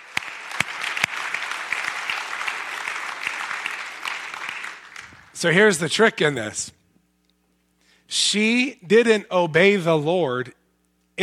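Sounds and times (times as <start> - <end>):
round of applause: 0.0 - 5.6
speech: 5.4 - 6.8, 8.1 - 10.6.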